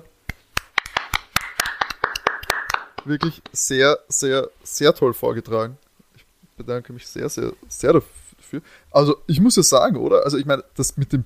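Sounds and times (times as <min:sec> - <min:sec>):
one person clapping hands: 0:00.3 - 0:03.6
speech: 0:03.0 - 0:05.8, 0:06.6 - 0:11.2.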